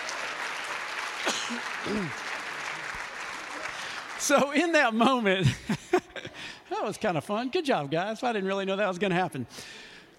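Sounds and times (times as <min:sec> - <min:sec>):
audience applause: 0:00.0 - 0:05.3
speech: 0:01.5 - 0:02.3, 0:04.2 - 0:05.9, 0:06.8 - 0:09.8.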